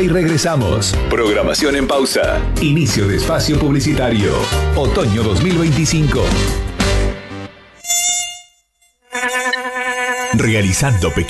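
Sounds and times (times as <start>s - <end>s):
speech: 0.0s - 7.0s, 10.3s - 11.2s
mosquito buzzing: 7.6s - 11.2s.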